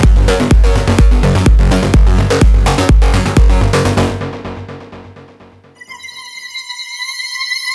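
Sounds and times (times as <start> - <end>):
techno music: 0.0 - 6.2.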